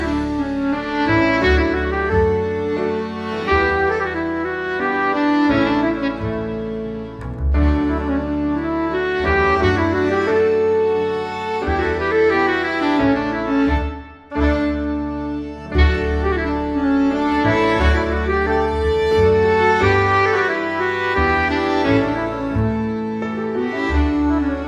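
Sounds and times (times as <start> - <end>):
traditional Scandinavian folk music from Norway, Sweden and Denmark: 0.0 - 24.6.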